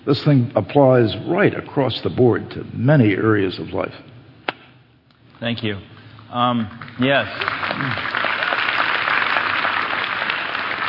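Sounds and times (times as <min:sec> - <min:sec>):
speech: 0:00.0 - 0:04.1, 0:05.4 - 0:08.2
audience applauding: 0:06.5 - 0:10.8.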